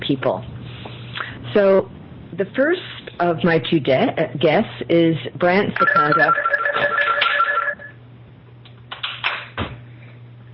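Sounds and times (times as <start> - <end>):
speech: 0.0 - 0.5, 1.5 - 7.2
steady low hum: 0.0 - 10.5
office telephone ringing with a bright electronic trill: 5.8 - 8.0.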